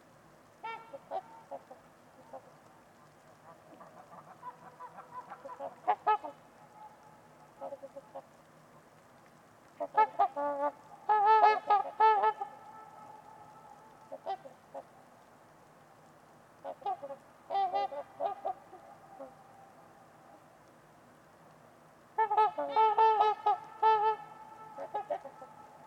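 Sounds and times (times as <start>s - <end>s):
trumpeter swans honking: 0.6s - 2.6s, 3.4s - 8.3s, 9.8s - 15.0s, 16.6s - 20.3s, 22.2s - 25.8s.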